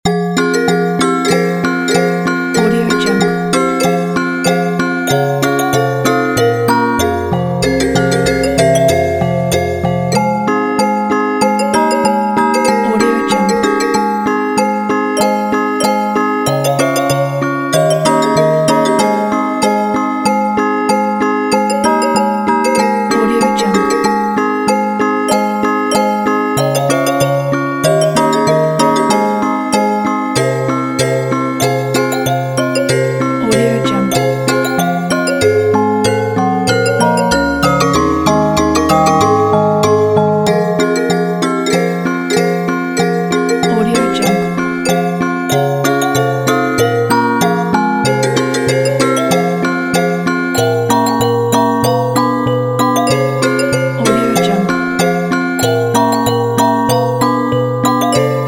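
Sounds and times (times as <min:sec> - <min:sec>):
children's fantasy music: 0:00.1 - 0:58.4.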